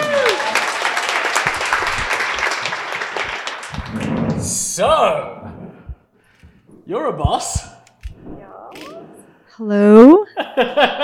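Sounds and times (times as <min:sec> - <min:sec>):
audience applause: 0:00.0 - 0:04.4
speech: 0:04.8 - 0:05.4, 0:06.9 - 0:07.7, 0:09.6 - 0:11.0
laughter: 0:10.3 - 0:11.0.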